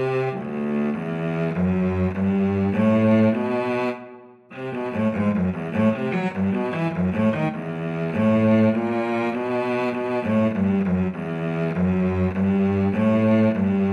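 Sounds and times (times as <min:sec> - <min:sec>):
cello playing a minuet: 0:00.0 - 0:13.9
viola playing a minuet: 0:00.0 - 0:13.9.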